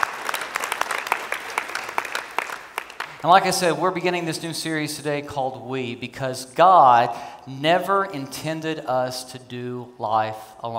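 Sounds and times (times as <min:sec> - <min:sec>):
applause from a weekend study gathering at Stone Canyon: 0:00.0 - 0:03.6
speech: 0:03.2 - 0:10.7.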